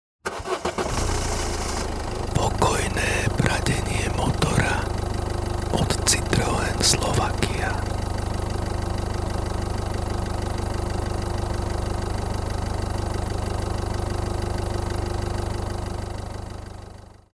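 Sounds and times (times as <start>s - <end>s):
Citroen car engine purring calmly: 0.3s - 17.2s.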